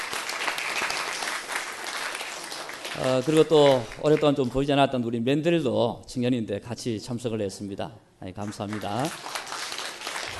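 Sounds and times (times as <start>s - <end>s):
audience applause: 0.0s - 4.2s, 8.6s - 10.3s
speech: 3.0s - 9.4s.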